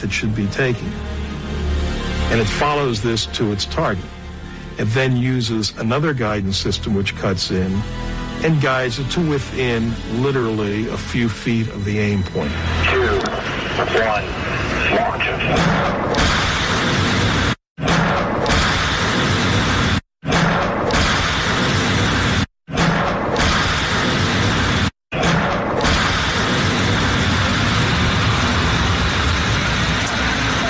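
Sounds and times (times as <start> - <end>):
speech: 0.0 - 1.2, 2.3 - 4.2, 4.8 - 13.2, 13.8 - 16.2
Tomahawk missile launches with roaring rumble: 15.4 - 30.3
Tomahawk missile explosions with heavy booms: 15.5 - 30.5.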